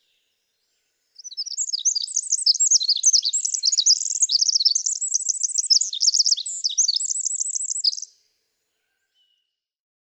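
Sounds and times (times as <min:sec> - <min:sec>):
Pacific wren singing: 0:01.2 - 0:08.1.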